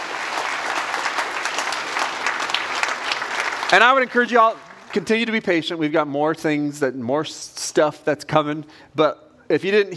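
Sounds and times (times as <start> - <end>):
audience applause: 0.0 - 5.5
speech: 3.7 - 9.9.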